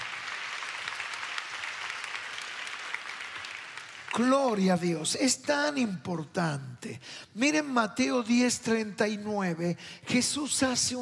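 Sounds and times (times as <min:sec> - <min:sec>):
audience applauding: 0:00.0 - 0:04.6
speech: 0:04.2 - 0:11.0.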